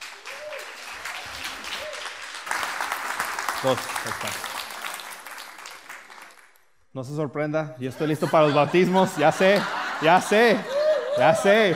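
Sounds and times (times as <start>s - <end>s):
loud applause: 0.0s - 6.6s, 9.3s - 11.7s
speech: 3.6s - 4.5s, 6.9s - 11.7s
laughter: 7.8s - 11.7s.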